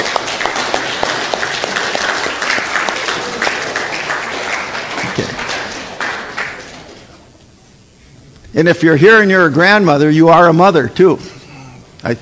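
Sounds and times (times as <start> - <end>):
applause: 0.0 - 7.3
speech: 8.6 - 11.3.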